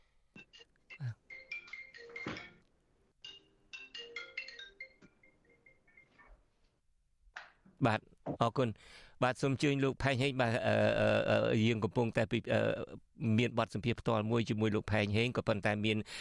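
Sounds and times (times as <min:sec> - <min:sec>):
phone electronic ringtone during a live interview: 0:00.4 - 0:06.4
speech: 0:07.8 - 0:16.1.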